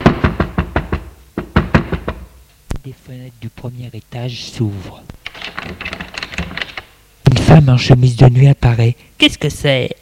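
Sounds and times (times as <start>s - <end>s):
fists knocking on a door: 0.0s - 2.4s
speech: 2.8s - 6.2s, 7.5s - 10.0s.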